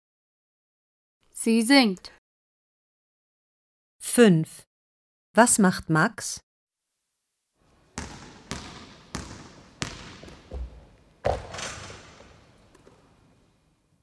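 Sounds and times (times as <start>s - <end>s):
speech: 1.4s - 2.2s, 4.2s - 4.7s, 5.4s - 6.4s
basketball bouncing: 7.7s - 13.2s.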